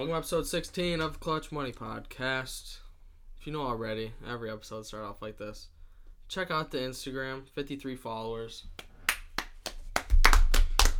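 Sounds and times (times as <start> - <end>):
speech: 0.0 - 2.8, 3.4 - 8.9
hand claps: 8.8 - 10.9.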